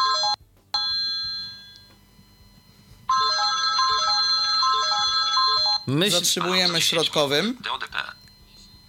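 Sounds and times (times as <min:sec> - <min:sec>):
alarm clock ringing: 0:00.0 - 0:01.9, 0:03.1 - 0:07.1
speech: 0:05.9 - 0:08.2.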